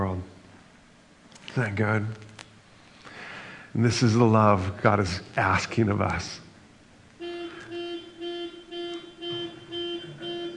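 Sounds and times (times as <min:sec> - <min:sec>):
speech: 0:01.6 - 0:02.3, 0:03.7 - 0:06.4
car alarm honking: 0:07.2 - 0:10.5.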